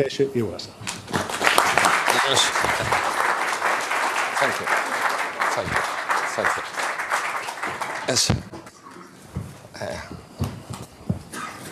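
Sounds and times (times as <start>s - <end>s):
speech: 0.0s - 0.9s, 2.3s - 3.1s, 4.4s - 4.9s, 5.6s - 6.8s, 8.1s - 8.7s
audience applause: 0.8s - 8.5s.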